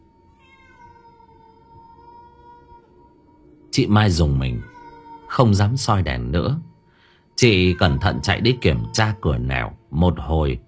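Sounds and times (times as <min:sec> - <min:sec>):
stray cat yowling to its group: 0:00.3 - 0:06.3, 0:07.4 - 0:09.9
speech: 0:03.8 - 0:04.7, 0:05.3 - 0:06.7, 0:07.4 - 0:10.6.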